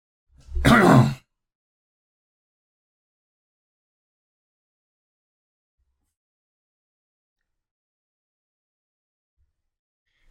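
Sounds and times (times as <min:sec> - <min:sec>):
throat clearing: 0:00.6 - 0:01.2.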